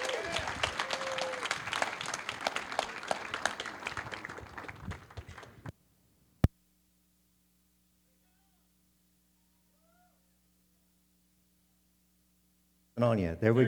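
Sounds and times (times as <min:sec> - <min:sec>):
church congregation applauding to welcome a guest speaker: 0:00.0 - 0:05.7.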